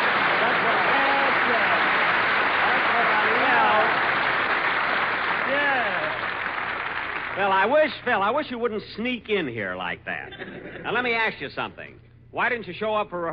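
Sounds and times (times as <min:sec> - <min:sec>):
studio audience applause: 0:00.0 - 0:08.1
speech: 0:07.4 - 0:13.3
laughter: 0:10.2 - 0:11.0.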